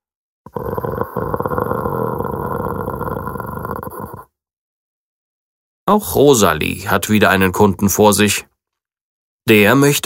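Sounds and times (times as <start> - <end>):
dog growling: 0.5 - 4.3
speech: 5.9 - 8.5, 9.5 - 10.0.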